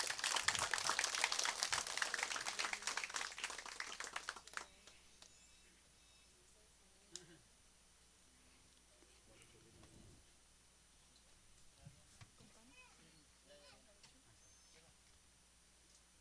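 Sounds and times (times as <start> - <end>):
audience applause: 0.0 - 4.8.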